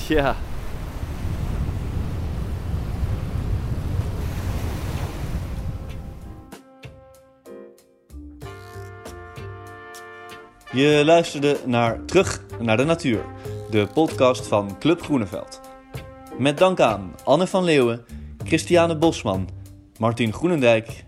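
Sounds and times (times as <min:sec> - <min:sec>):
North Sea waves breaking on shore: 0:00.0 - 0:06.5
wind rushing: 0:00.0 - 0:06.5
speech: 0:00.1 - 0:00.5, 0:10.8 - 0:15.6, 0:16.4 - 0:21.0.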